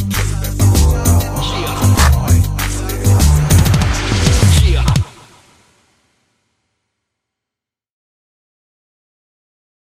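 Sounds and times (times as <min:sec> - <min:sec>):
instrumental music: 0:00.0 - 0:05.4.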